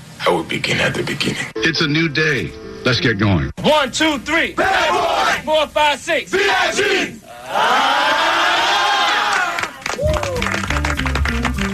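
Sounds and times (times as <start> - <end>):
speech: 0.2 - 8.4
graduates cheering a commencement speaker: 6.4 - 11.7
graduates applauding a commencement speaker: 9.1 - 11.7.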